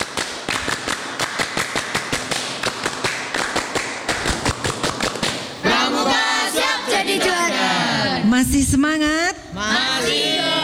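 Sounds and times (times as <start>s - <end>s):
group clapping the scout clap pattern in unison: 0.0s - 7.1s
speech: 8.4s - 10.5s.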